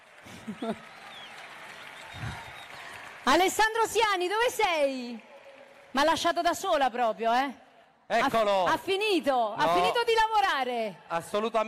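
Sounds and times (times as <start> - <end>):
audience applause: 0.0 - 6.9
speech: 0.2 - 1.0, 3.2 - 5.3, 5.9 - 11.6.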